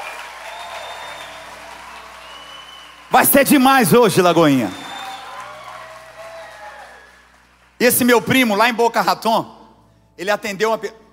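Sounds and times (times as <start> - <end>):
audience applause: 0.0 - 7.9
speech: 3.2 - 4.8, 7.8 - 9.6, 10.2 - 11.0.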